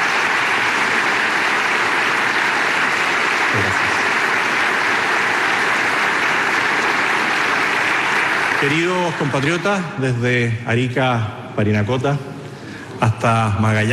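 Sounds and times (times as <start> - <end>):
audience applause: 0.0 - 10.2
speech: 8.6 - 12.3, 13.2 - 13.9.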